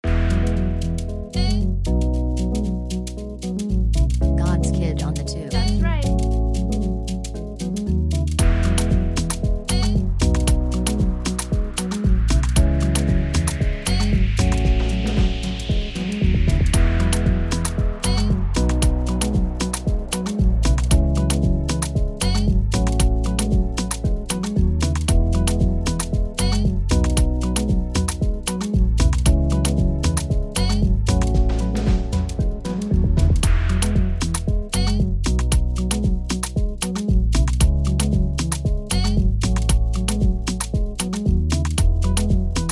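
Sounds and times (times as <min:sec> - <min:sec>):
instrumental type beat: 0:00.0 - 0:42.7.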